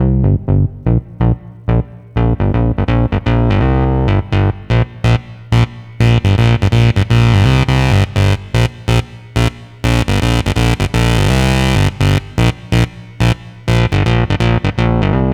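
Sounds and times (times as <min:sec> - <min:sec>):
house arpeggio loops: 0:00.0 - 0:15.3.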